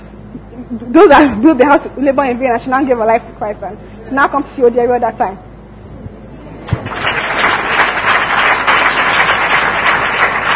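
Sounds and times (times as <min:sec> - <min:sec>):
speech: 0:00.6 - 0:05.4
audience clapping: 0:06.6 - 0:10.5.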